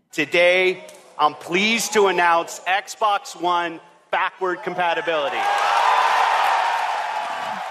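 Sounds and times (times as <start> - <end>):
speech: 0.2 - 5.6
audience cheering in a hall: 4.8 - 7.6.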